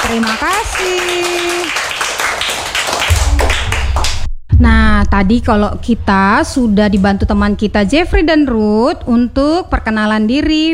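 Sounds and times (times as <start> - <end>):
schoolchildren clapping for classmates: 0.0 - 4.3
speech: 0.1 - 1.8, 4.6 - 10.7
low thump: 3.1 - 6.2.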